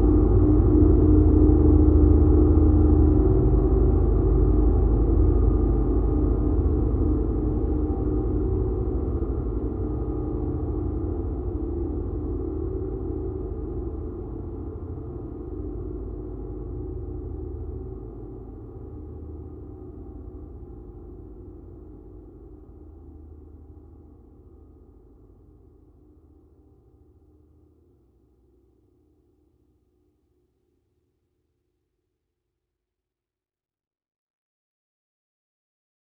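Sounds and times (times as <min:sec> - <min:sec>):
dark ambient drone: 0:00.0 - 0:26.1.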